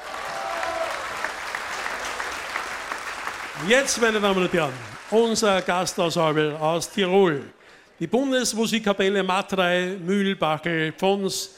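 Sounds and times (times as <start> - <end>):
audience applause for the mayor: 0.0 - 6.4
speech: 3.6 - 11.5.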